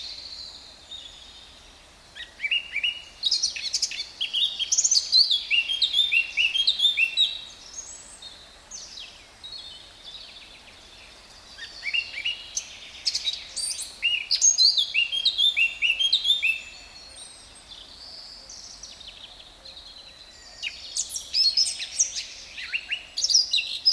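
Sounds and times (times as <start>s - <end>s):
Sylvia atricapilla Eurasian blackcap singing: 2.2s - 8.0s, 11.6s - 17.5s, 20.6s - 23.9s.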